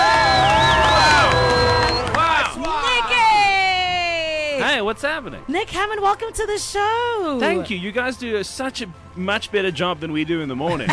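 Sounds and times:
studio audience cheering and whooping for a guest: 0.0s - 4.2s
speech: 4.9s - 10.9s.

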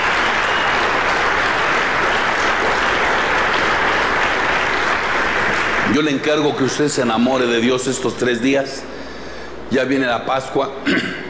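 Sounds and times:
audience applause: 0.0s - 6.8s
speech: 5.9s - 8.9s, 9.7s - 11.0s.

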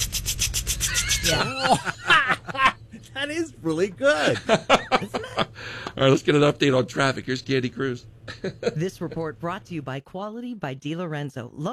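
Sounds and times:
voice imitating a water sprinkler: 0.0s - 1.6s
laughter: 0.9s - 2.8s, 4.1s - 6.0s, 8.3s - 9.2s
speech: 1.3s - 2.1s, 3.2s - 11.7s.

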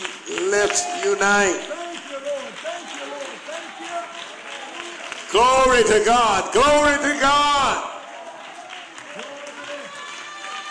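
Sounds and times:
church congregation clapping hands: 0.0s - 10.6s
speech: 0.5s - 1.8s, 5.3s - 7.9s.

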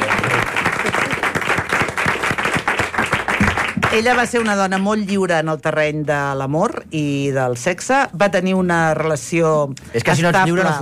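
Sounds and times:
audience applause: 0.0s - 4.8s
speech: 4.0s - 10.8s.

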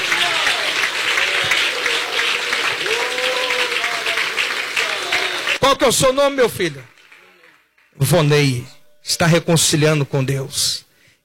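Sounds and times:
church audience applauding: 0.0s - 8.1s
speech: 5.7s - 7.0s, 8.0s - 11.2s.

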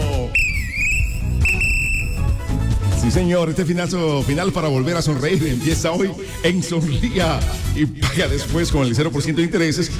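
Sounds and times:
referee whistle blow: 0.2s - 2.6s
speech: 3.1s - 9.9s.

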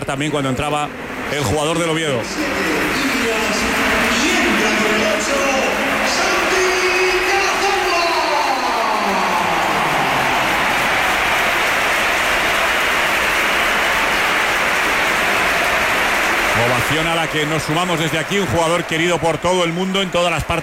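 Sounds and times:
stadium crowd ovation applause: 0.0s - 20.6s
speech: 0.1s - 6.4s, 16.9s - 20.6s.

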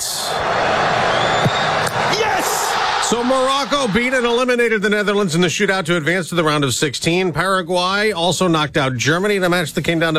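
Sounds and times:
stadium crowd roaring during a World Cup penalty shootout: 0.0s - 4.9s
speech: 3.1s - 10.1s.

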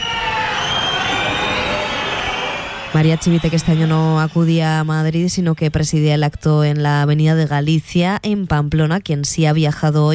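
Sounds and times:
crowd shouting and booing: 0.0s - 5.1s
speech: 3.0s - 10.1s.

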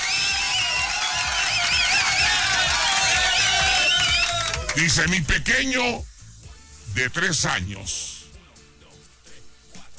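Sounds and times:
audience applause: 0.0s - 4.8s
speech: 4.8s - 6.1s, 6.9s - 8.1s.

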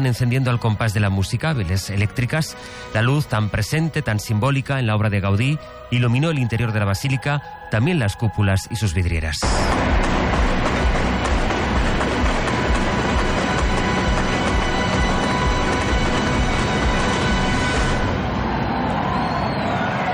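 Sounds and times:
speech: 0.0s - 10.4s
crowd ovation: 9.4s - 20.1s
fireworks display: 9.4s - 20.1s.

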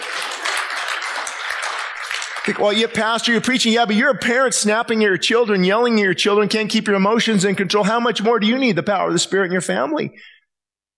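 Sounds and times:
audience clapping: 0.0s - 3.8s
speech: 2.4s - 10.4s.

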